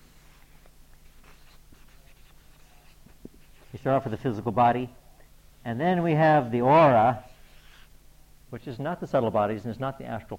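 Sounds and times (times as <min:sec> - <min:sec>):
steady low hiss: 0:00.0 - 0:10.3
pen or marker drawing a diagram: 0:01.2 - 0:03.7, 0:07.3 - 0:07.9
speech: 0:03.8 - 0:05.0, 0:05.6 - 0:07.3, 0:08.5 - 0:10.3.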